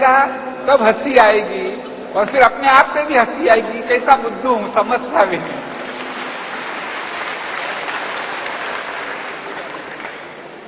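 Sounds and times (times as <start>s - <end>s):
speech: 0.0s - 5.6s
large audience applause: 5.6s - 10.6s.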